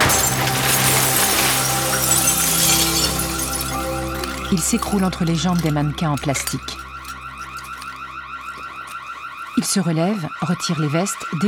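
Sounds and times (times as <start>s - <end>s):
glass shards clattering: 0.0s - 9.0s
shop window glass shattering as a body bursts through: 0.0s - 9.0s
speech: 4.5s - 6.8s, 9.7s - 11.4s.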